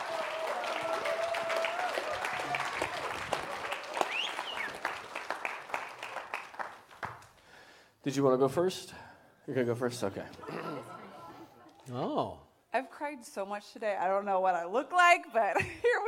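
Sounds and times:
audience applause welcoming two speakers to the stage: 0.0 - 7.4
speech: 8.0 - 10.6, 11.9 - 16.0.

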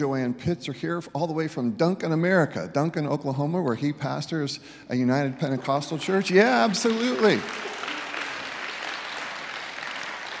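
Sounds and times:
speech: 0.0 - 7.8
audience applause: 5.5 - 10.3.

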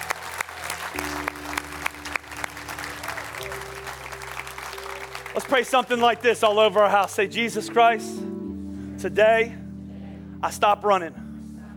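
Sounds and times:
audience clapping: 0.0 - 7.8
low sustained musical notes: 0.0 - 11.7
speech: 5.4 - 8.3, 9.0 - 9.6, 10.4 - 11.2.

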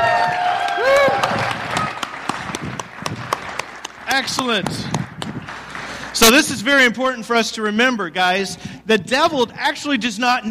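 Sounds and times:
audience hand clapping: 0.0 - 6.9
speech: 4.2 - 5.0, 6.2 - 10.5.

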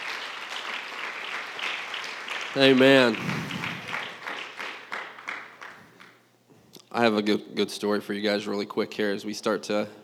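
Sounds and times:
audience applause: 0.0 - 6.1
speech: 2.6 - 3.4, 7.0 - 10.0.

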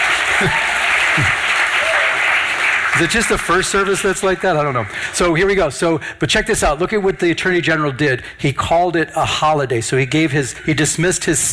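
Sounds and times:
audience applause: 0.0 - 8.0
laughter: 0.0 - 11.5
speech: 0.4 - 1.4, 3.0 - 11.5.

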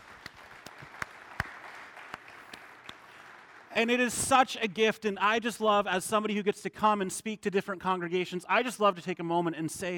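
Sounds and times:
audience applause: 0.0 - 3.7
speech: 3.8 - 9.9.

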